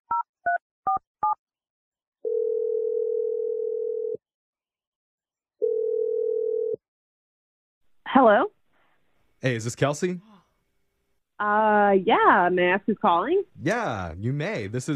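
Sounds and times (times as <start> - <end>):
telephone dial tone: 2.2 - 4.2, 5.6 - 6.8
speech: 8.1 - 8.6, 9.4 - 10.3, 11.4 - 14.9.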